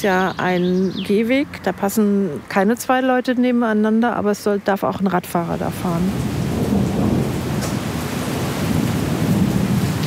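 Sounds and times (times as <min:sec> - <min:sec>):
speech: 0:00.0 - 0:07.0
heavy pouring rain: 0:04.3 - 0:10.0.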